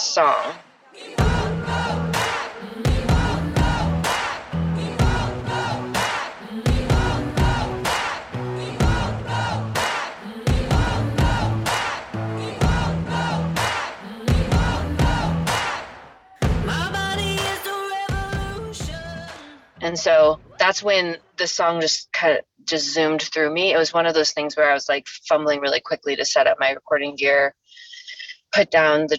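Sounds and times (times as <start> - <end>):
speech: 0.2 - 1.3, 19.8 - 27.6, 28.5 - 29.1
protest crowd chanting: 0.5 - 18.6.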